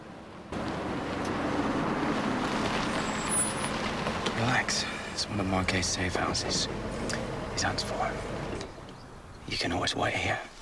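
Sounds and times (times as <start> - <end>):
car driving and slowing down: 0.0 - 9.1
speech: 4.4 - 7.0, 7.6 - 8.4, 9.5 - 10.5.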